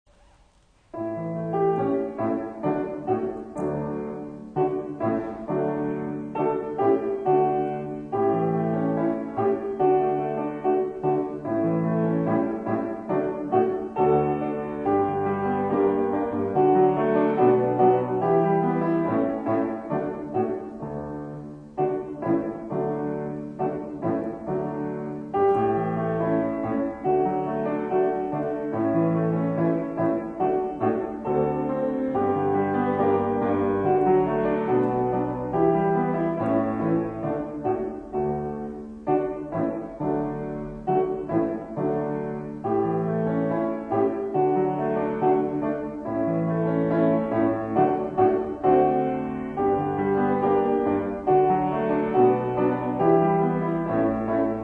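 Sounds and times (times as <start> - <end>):
instrumental music: 0.1 - 54.6.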